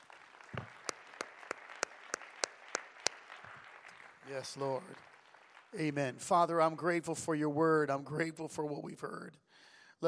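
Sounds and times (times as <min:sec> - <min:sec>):
audience clapping hands: 0:00.0 - 0:07.0
speech: 0:04.3 - 0:05.1, 0:05.7 - 0:09.4.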